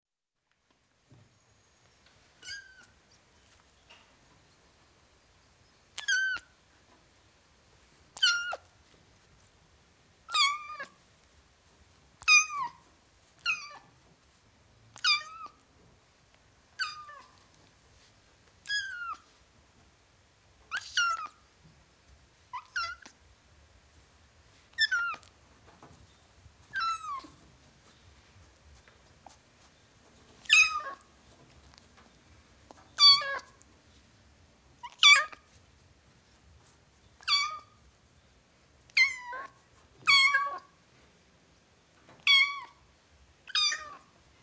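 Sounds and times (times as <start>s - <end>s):
kitten meowing: 2.4s - 2.9s, 6.0s - 6.5s, 8.2s - 8.7s, 10.3s - 11.0s, 12.2s - 12.8s, 13.4s - 13.8s, 15.0s - 15.6s, 16.8s - 17.3s, 18.6s - 19.2s, 20.7s - 21.4s, 22.5s - 23.2s, 26.7s - 27.4s, 30.4s - 31.0s, 33.0s - 33.5s, 34.8s - 35.4s, 37.2s - 37.7s, 38.9s - 40.7s, 42.2s - 42.8s, 43.5s - 44.1s.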